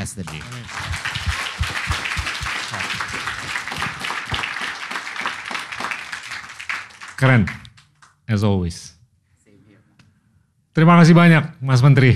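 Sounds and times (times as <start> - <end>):
audience applause: 0.0 - 7.8
speech: 0.1 - 1.7, 7.2 - 7.6, 8.3 - 9.0, 10.8 - 12.1.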